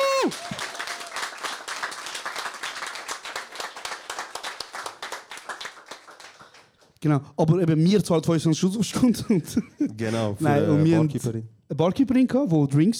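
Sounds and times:
audience applause: 0:00.0 - 0:06.8
speech: 0:00.2 - 0:00.5, 0:07.0 - 0:12.9.

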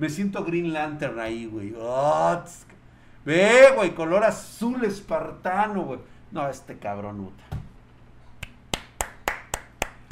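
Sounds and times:
speech: 0:00.0 - 0:07.6
hand claps: 0:08.4 - 0:10.0.

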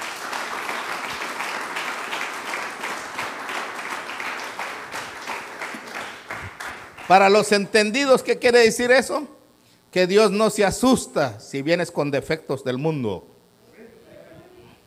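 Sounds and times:
audience clapping hands in praise: 0:00.0 - 0:07.7
speech: 0:07.1 - 0:09.4, 0:10.0 - 0:13.3.

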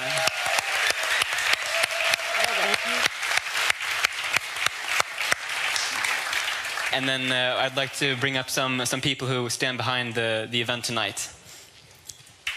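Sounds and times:
audience applause: 0:00.0 - 0:07.9
speech: 0:07.0 - 0:11.4.

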